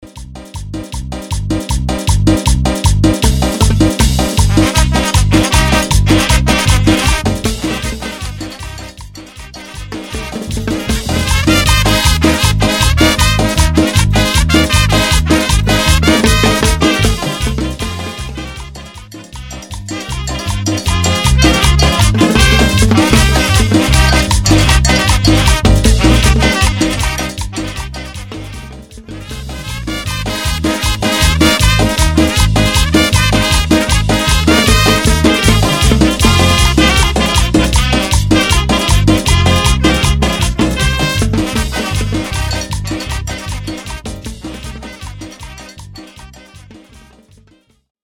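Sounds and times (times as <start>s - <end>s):
banda music: 0.0s - 47.9s.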